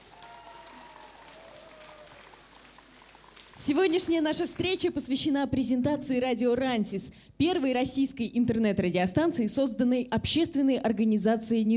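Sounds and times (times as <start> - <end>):
audience applause: 0.0 - 4.9
speech: 3.6 - 11.7.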